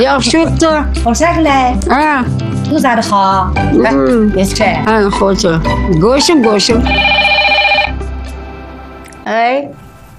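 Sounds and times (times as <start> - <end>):
speech: 0.0 - 7.3, 9.3 - 9.8
mobile phone ringing: 6.5 - 8.1.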